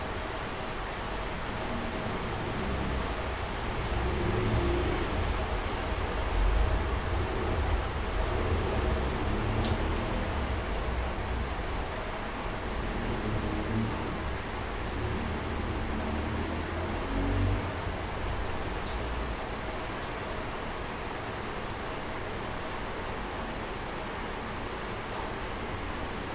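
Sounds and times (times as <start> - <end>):
steady rain: 0.0 - 26.3
sharp drip-like ticks: 9.5 - 9.9.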